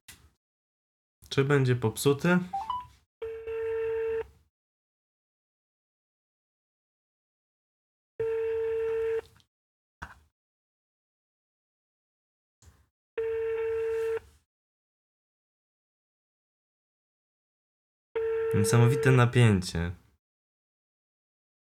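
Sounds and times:
speech: 1.3 - 2.7, 18.6 - 20.0
telephone ringback tones: 2.6 - 4.3, 8.2 - 9.2, 13.2 - 14.2, 18.2 - 19.2.

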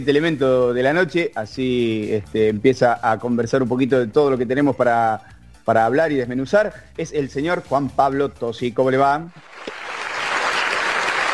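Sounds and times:
speech: 0.0 - 9.8
crowd applause: 9.4 - 11.3.

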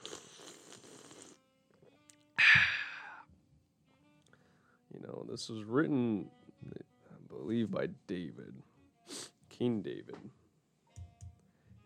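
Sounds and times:
person drinking water: 0.0 - 1.4
speech: 5.3 - 6.8, 7.5 - 10.4.

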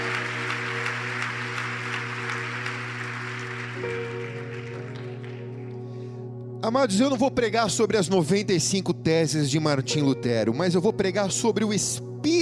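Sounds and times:
church audience applause: 0.0 - 5.8
sustained organ or keyboard chord: 0.0 - 12.3
speech: 6.6 - 12.3.

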